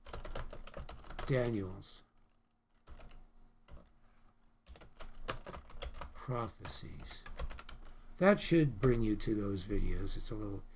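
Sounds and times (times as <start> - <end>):
typing a search on a computer keyboard: 0.0 - 1.3, 2.8 - 3.9, 4.6 - 7.9
speech: 1.3 - 2.0, 6.3 - 7.4, 8.2 - 10.7.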